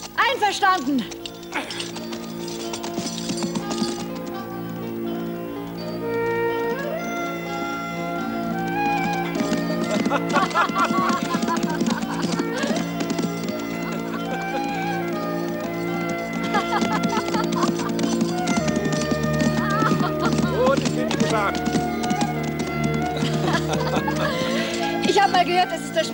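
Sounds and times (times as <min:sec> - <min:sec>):
horses galloping: 0:00.0 - 0:26.1
speech: 0:00.3 - 0:02.1
laughter: 0:09.2 - 0:26.1.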